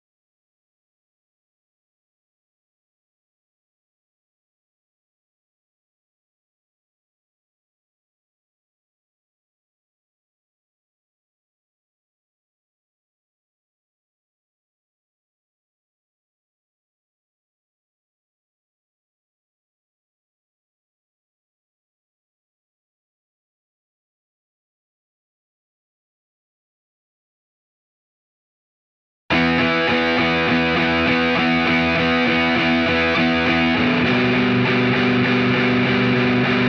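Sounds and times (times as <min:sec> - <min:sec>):
guitar: 0:29.3 - 0:36.6.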